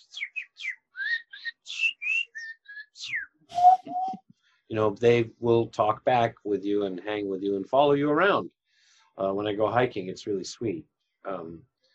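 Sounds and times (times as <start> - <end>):
person whistling an imitation of a bird call: 0.0 - 4.2
speech: 4.7 - 8.6, 9.2 - 11.7.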